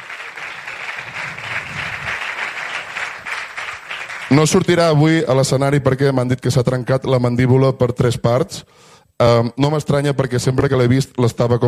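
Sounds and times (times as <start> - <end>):
audience applause: 0.0 - 4.8
speech: 4.3 - 11.6.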